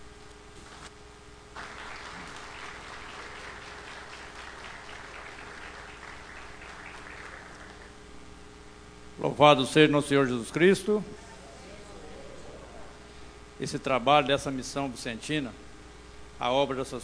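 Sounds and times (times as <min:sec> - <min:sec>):
audience applause: 0:01.6 - 0:08.0
speech: 0:09.2 - 0:11.2, 0:13.6 - 0:15.6, 0:16.4 - 0:17.0.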